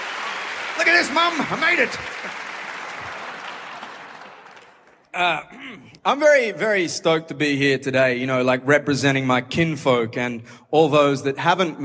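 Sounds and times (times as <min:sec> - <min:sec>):
audience applause: 0:00.0 - 0:05.1
speech: 0:00.8 - 0:02.4, 0:05.2 - 0:11.8.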